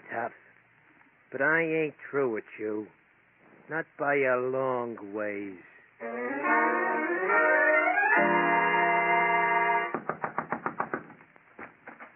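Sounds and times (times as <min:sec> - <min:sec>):
speech: 0:00.2 - 0:00.5, 0:01.3 - 0:03.0, 0:03.7 - 0:06.6
droning, rising musical tone: 0:06.0 - 0:09.9
pounding on a door: 0:09.9 - 0:12.1.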